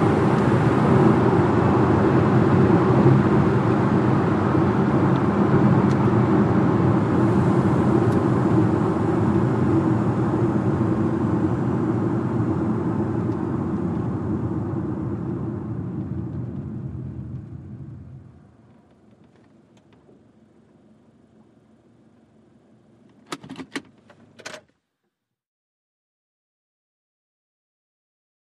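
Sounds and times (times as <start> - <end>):
sedan accelerating slowly: 0.0 - 19.1.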